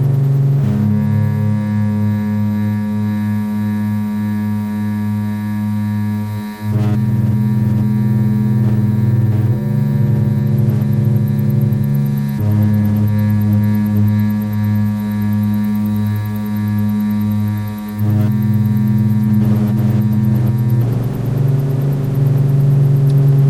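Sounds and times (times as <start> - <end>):
neofolk drone music: 0.0 - 23.4.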